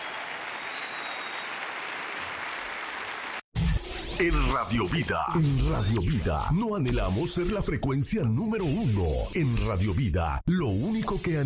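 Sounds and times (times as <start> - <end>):
audience applause: 0.0 - 3.4
speech: 4.2 - 11.4.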